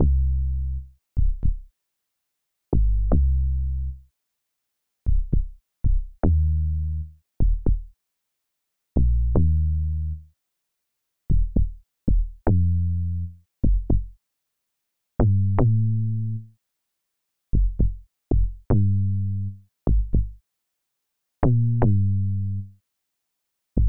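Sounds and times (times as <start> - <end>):
bass: 0.0 - 1.7, 2.7 - 4.0, 5.1 - 8.0, 9.0 - 10.3, 11.3 - 14.2, 15.2 - 16.5, 17.5 - 20.4, 21.4 - 22.8.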